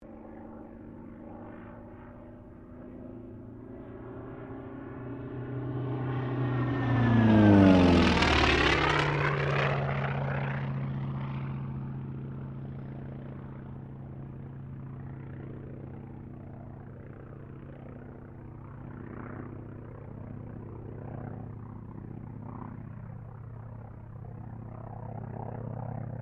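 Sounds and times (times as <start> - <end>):
T-28D Trojan aircraft passing: 0.0 - 26.2.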